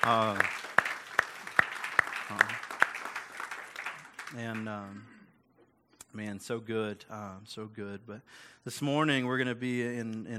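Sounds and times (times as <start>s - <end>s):
speech: 0.0s - 0.6s, 4.3s - 5.1s, 6.1s - 10.3s
audience applauding: 0.0s - 5.0s.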